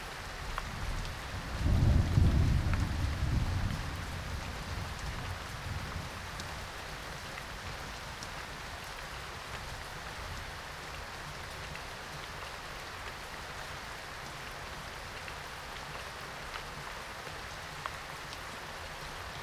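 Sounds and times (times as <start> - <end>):
thunderstorm: 0.7 - 6.8.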